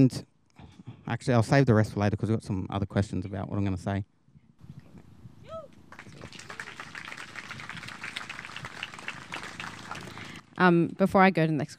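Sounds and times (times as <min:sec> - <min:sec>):
speech: 0:00.0 - 0:00.3, 0:01.1 - 0:04.1, 0:10.6 - 0:11.7
audience clapping: 0:05.9 - 0:10.5.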